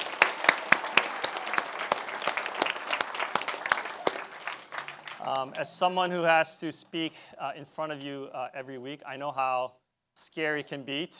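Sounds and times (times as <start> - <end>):
audience applause: 0.0 - 5.8
speech: 5.2 - 11.1.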